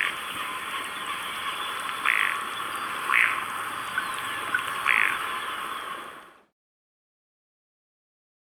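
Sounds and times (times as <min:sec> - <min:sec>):
Andean ruddy duck calling in Ecuador: 0:00.0 - 0:03.5, 0:04.3 - 0:06.0.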